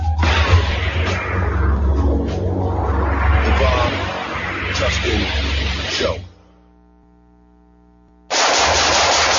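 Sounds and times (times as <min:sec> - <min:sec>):
low steady hum: 0:00.2 - 0:08.3
rattling gunfire: 0:08.3 - 0:09.3.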